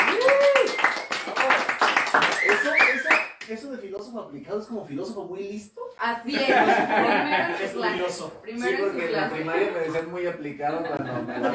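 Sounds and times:
audience applause: 0:00.0 - 0:03.3
speech: 0:03.5 - 0:11.5
laughter: 0:06.3 - 0:08.1, 0:10.6 - 0:11.5.

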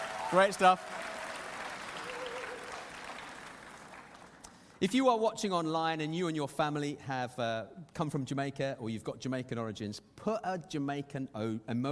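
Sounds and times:
audience round of applause: 0:00.0 - 0:04.7
speech: 0:00.3 - 0:01.1, 0:04.8 - 0:11.9.

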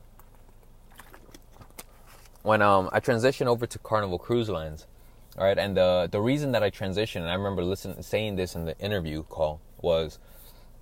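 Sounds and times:
person sipping water: 0:00.0 - 0:02.4
speech: 0:02.4 - 0:10.4.

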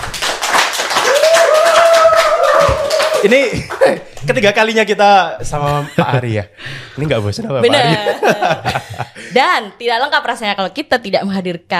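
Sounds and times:
audience clapping: 0:00.0 - 0:04.5
speech: 0:03.2 - 0:11.7
laughter: 0:05.6 - 0:09.5.

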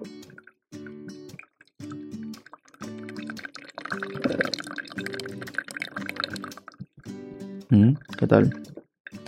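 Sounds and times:
coffee brewing and dripping: 0:00.2 - 0:07.0
speech: 0:04.0 - 0:04.6, 0:07.7 - 0:08.7.

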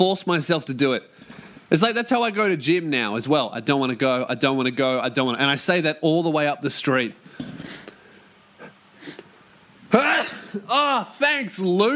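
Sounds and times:
speech: 0:00.0 - 0:07.8, 0:09.9 - 0:11.9
quiet sniffs and short breaths: 0:07.5 - 0:08.0, 0:08.6 - 0:09.3
loud explosive sneeze: 0:09.9 - 0:10.7.

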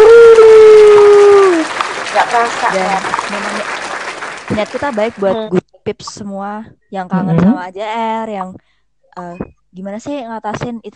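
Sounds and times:
applause: 0:00.0 - 0:05.5
speech: 0:02.5 - 0:03.7, 0:04.5 - 0:10.9.

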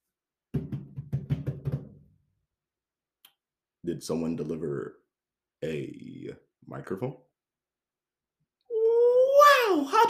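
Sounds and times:
knocking on a door: 0:00.5 - 0:02.2
speech: 0:03.9 - 0:07.3, 0:09.8 - 0:10.0.

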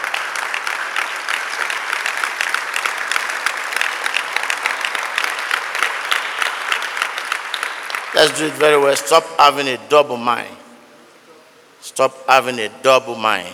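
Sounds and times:
audience applause: 0:00.0 - 0:08.7
speech: 0:08.2 - 0:10.6, 0:11.9 - 0:13.5.

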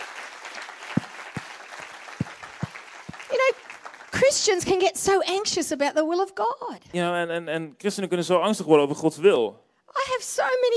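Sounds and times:
audience applause: 0:00.0 - 0:04.8
speech: 0:04.3 - 0:10.7.

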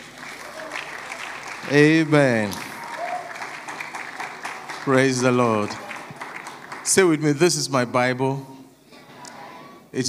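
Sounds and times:
audience clapping: 0:00.0 - 0:07.6
speech: 0:01.6 - 0:02.6, 0:04.8 - 0:05.8, 0:06.9 - 0:08.5.

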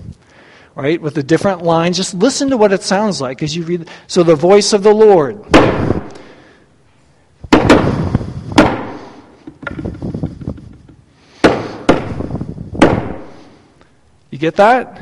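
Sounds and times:
speech: 0:00.8 - 0:05.9, 0:14.4 - 0:14.9
hand pounding a wooden pulpit to mimic thunderclaps: 0:07.5 - 0:13.3.

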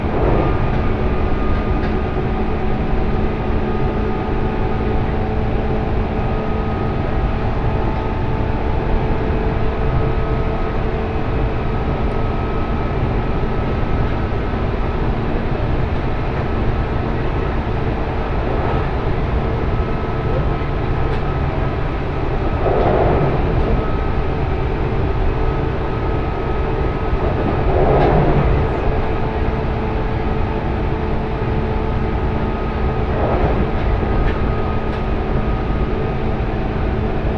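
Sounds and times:
train clunks: 0:00.0 - 0:04.3, 0:15.2 - 0:37.1
railcar rumbling on the Sanyo Main Line: 0:00.0 - 0:37.3.

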